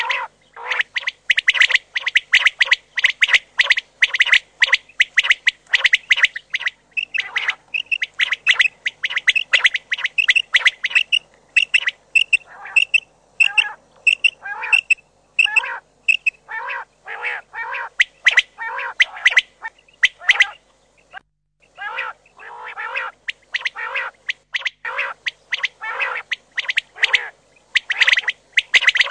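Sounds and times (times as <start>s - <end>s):
Common quail calls: 0.0s - 29.0s.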